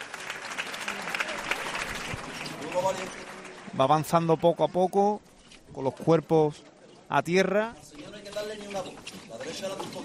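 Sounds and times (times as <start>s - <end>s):
crowd applause at a procession: 0.0s - 4.1s
speech: 2.8s - 10.0s.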